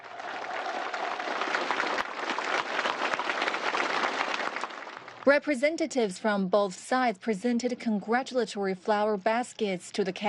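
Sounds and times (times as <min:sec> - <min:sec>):
audience applauding performers after a show: 0:00.0 - 0:05.3
speech: 0:05.2 - 0:10.2.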